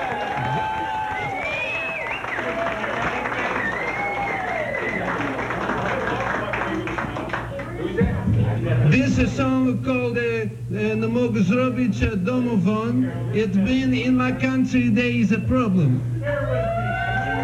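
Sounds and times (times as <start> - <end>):
audience hollering: 0.0 - 7.0, 16.2 - 17.4
audience applause: 0.0 - 8.0
speech: 9.2 - 16.1.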